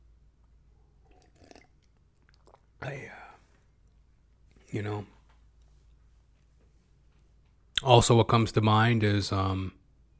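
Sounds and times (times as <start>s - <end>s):
person sipping water and swallowing: 0.4s - 4.0s
speech: 2.8s - 3.2s, 4.7s - 5.2s, 7.8s - 9.8s.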